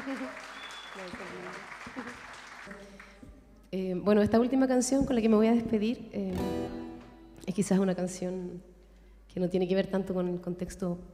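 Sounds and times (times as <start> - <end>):
audience applause: 0.0 - 3.2
speech: 0.1 - 3.1, 3.7 - 6.8, 7.5 - 8.7, 9.3 - 11.1.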